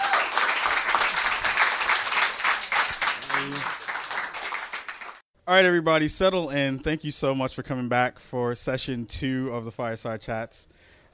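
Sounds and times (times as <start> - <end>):
audience applause: 0.0 - 5.2
person calling out: 3.2 - 3.7
speech: 5.5 - 11.1.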